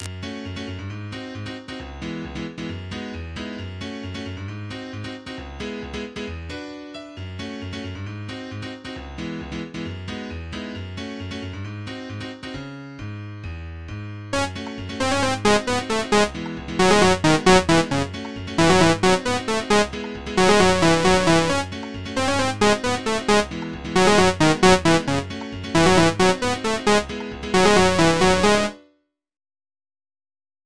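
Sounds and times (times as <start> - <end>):
hip hop beat: 14.4 - 28.7.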